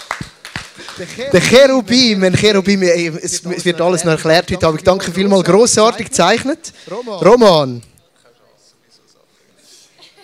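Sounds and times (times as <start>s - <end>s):
audience applause: 0.0s - 1.5s
speech: 0.9s - 7.9s.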